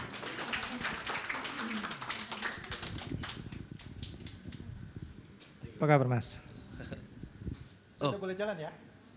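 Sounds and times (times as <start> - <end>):
audience applause: 0.0 - 3.6
speech: 5.8 - 6.5, 8.0 - 8.9.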